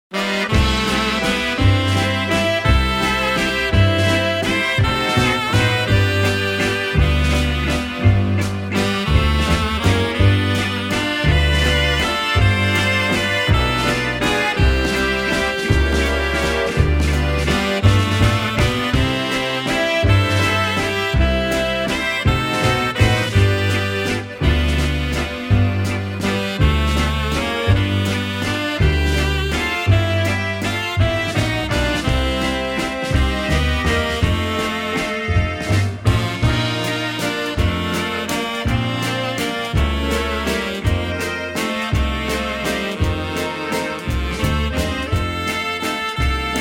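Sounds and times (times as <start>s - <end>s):
waltz music: 0.1s - 46.6s.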